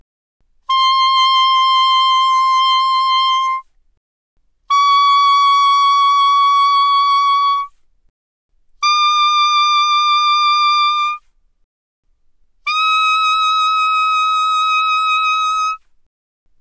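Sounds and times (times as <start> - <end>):
soprano sax vibrato: 0.7 - 3.6, 4.7 - 7.7, 8.8 - 11.2, 12.7 - 15.8.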